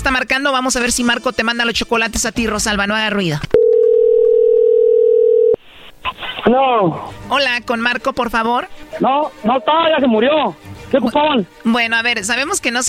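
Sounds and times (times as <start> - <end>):
speech: 0.1 - 3.6, 6.4 - 12.8
steady single-pitched telephone tone on a phone call: 3.5 - 5.6.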